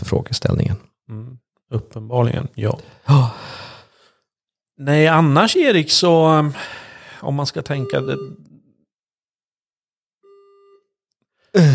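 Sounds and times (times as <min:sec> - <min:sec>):
speech: 0:00.0 - 0:01.4, 0:02.0 - 0:03.6, 0:04.8 - 0:08.4, 0:11.6 - 0:11.7
electronic signal beep for parliamentary question time: 0:07.7 - 0:08.4.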